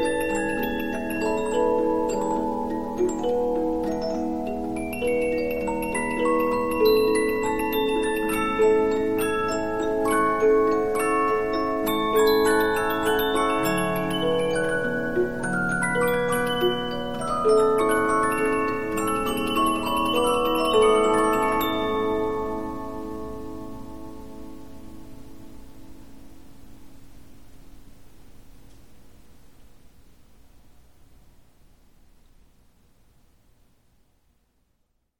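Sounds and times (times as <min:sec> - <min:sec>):
Polyphon 15-inch disc music box playing: 0:00.0 - 0:24.6.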